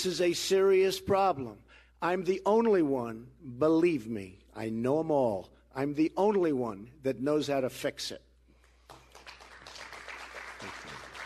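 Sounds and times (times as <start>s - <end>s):
speech: 0.0s - 8.3s
small polite crowd applause: 8.8s - 11.2s.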